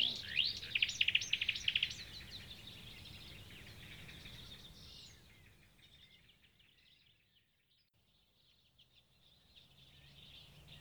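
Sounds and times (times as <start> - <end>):
marsh warbler singing a medley of chatter, trills and whistles: 0.0 - 10.7.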